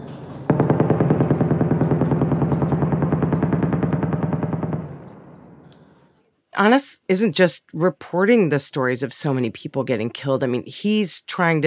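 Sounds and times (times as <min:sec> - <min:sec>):
rapid automatic gunfire during intensive shelling in southern Gaza: 0:00.4 - 0:05.5
speech: 0:06.6 - 0:11.6.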